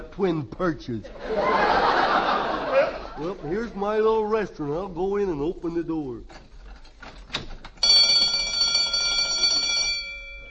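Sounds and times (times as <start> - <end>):
speech: 0.2 - 1.8, 2.7 - 6.4
laughter: 1.0 - 3.8
burglar alarm ringing: 7.8 - 10.5.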